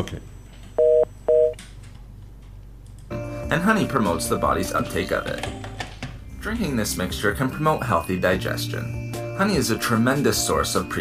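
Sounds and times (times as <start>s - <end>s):
speech: 0.0s - 0.3s, 3.5s - 5.7s, 6.4s - 10.9s
phone dialing a mobile number: 0.8s - 1.6s.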